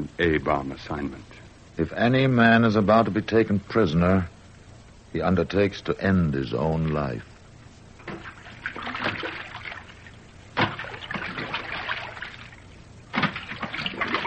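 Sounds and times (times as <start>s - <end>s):
speech: 0.0s - 4.3s, 5.1s - 7.3s
water lapping and splashing: 8.0s - 14.2s.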